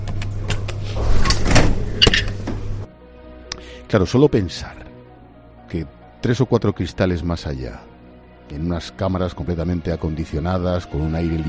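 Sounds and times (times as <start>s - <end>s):
laboratory door sliding open: 0.8s - 2.9s
speech: 3.9s - 4.9s, 5.7s - 7.9s, 8.5s - 11.4s.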